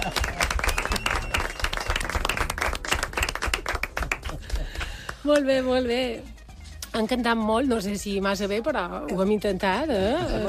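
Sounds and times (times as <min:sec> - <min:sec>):
crowd applauding: 0:00.0 - 0:05.2
speech: 0:05.2 - 0:06.3, 0:06.9 - 0:10.4.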